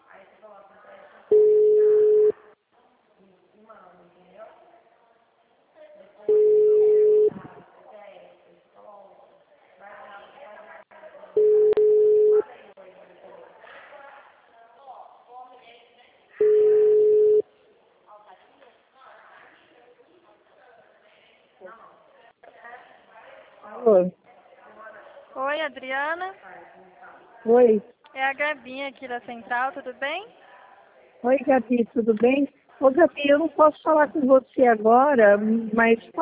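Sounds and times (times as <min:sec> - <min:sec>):
ringback tones of an outgoing phone call: 0:01.3 - 0:02.4, 0:06.3 - 0:07.4, 0:11.4 - 0:12.4, 0:16.4 - 0:17.4
speech: 0:27.4 - 0:30.4, 0:31.2 - 0:36.1.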